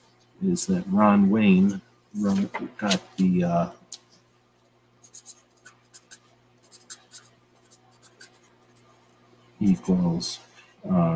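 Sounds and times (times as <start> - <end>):
speech: 0.4 - 3.8, 9.6 - 11.1
handwriting pen strokes scratching: 5.0 - 8.9.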